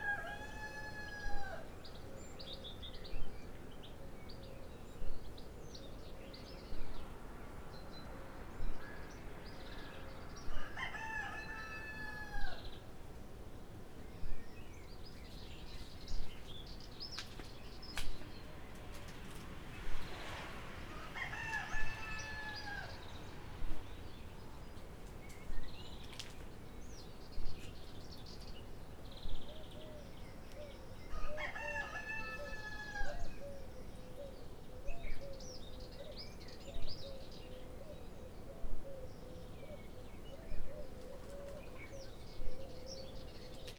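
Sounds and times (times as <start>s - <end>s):
rooster crowing: 0.0s - 1.7s, 10.6s - 12.6s, 20.9s - 23.3s, 31.1s - 33.4s
country birds: 0.0s - 43.7s.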